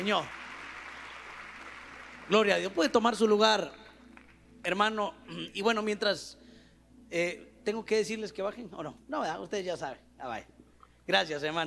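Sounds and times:
speech: 0.0 - 0.4, 2.3 - 3.8, 4.6 - 6.4, 7.1 - 11.6
audience applauding: 0.0 - 3.1.

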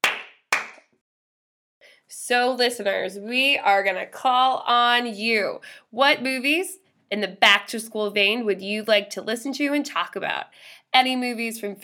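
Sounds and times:
hand claps: 0.0 - 0.9
speech: 2.1 - 11.8.

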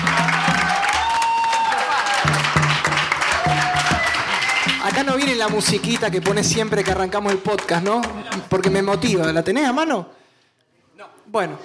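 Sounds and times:
audience applause: 0.0 - 8.9
speech: 4.9 - 10.2, 11.0 - 11.6.

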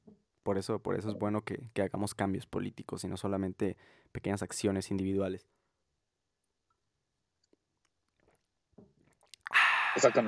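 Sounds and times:
speech: 0.5 - 5.6, 10.0 - 10.2
person drinking water: 9.1 - 10.2
loud breathy exhale: 9.5 - 10.2.

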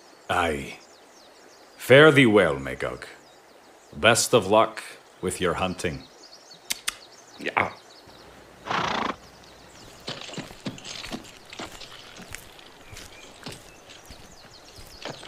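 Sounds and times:
speech: 0.3 - 0.8, 1.9 - 3.2, 3.9 - 6.1, 7.4 - 7.8
horse hooves clopping while ridden into a forest: 8.1 - 15.2
horse whinnying: 8.6 - 9.2.

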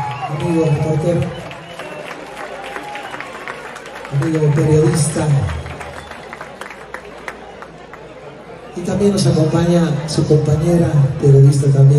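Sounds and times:
audience applause: 0.0 - 8.4
speech: 0.4 - 1.5, 4.1 - 5.6, 8.8 - 11.9.

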